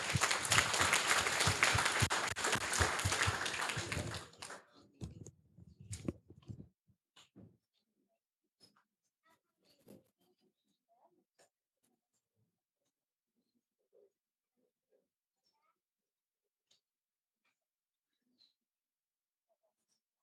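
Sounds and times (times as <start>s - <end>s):
audience applause: 0.0s - 4.7s.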